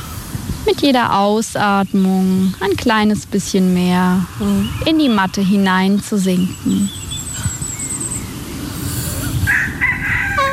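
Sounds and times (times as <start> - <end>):
speech: 0.8 - 7.0
rooster crowing: 9.3 - 10.5.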